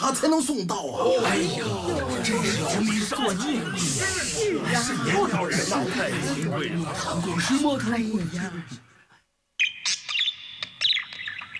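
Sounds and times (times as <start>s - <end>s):
speech: 0.1s - 8.9s
laughter: 1.0s - 7.8s
white parrot chirping: 9.6s - 11.5s.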